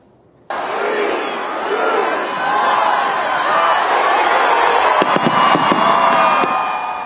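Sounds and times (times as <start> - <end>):
large New Year's midnight crowd cheering: 0.5 - 7.0
fireworks going off: 4.9 - 6.7.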